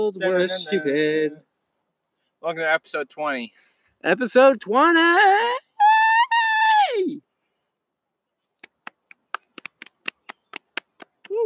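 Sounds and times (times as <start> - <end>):
speech: 0.0 - 1.5, 2.4 - 5.6
person whooping a cheer: 5.4 - 7.2, 11.2 - 11.4
person clapping: 8.6 - 11.4.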